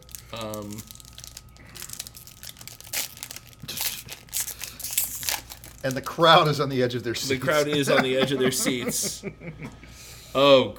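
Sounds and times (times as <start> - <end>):
crinkly foil trading card pack being torn open: 0.0 - 6.6
speech: 0.4 - 1.0, 5.8 - 10.7
laughter: 7.2 - 9.9.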